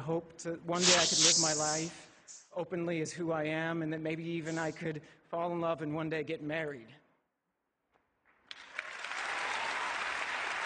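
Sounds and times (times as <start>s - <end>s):
speech: 0.1s - 7.0s
audience applause: 8.7s - 10.6s.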